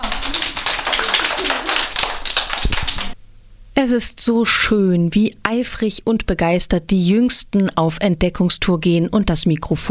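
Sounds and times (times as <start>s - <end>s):
group of children clapping hands: 0.0s - 3.2s
speech: 3.8s - 9.8s.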